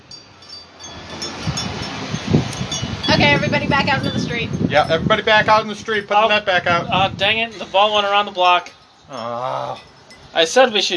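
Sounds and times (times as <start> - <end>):
car passing on the street: 0.2 - 8.5
speech: 3.2 - 10.9.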